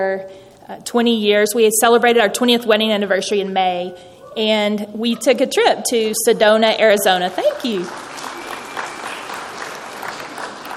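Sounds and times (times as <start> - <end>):
speech: 0.0 - 8.2
audience applause: 7.1 - 10.7.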